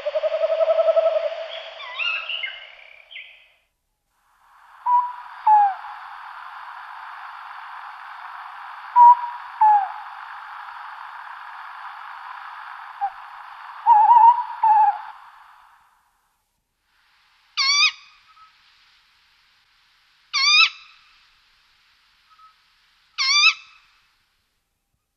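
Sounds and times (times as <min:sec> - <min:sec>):
tawny owl giving harsh sharp screeching calls: 0:00.0 - 0:03.0, 0:04.9 - 0:05.9, 0:13.8 - 0:15.2, 0:17.6 - 0:18.0, 0:20.3 - 0:20.9, 0:23.2 - 0:23.8.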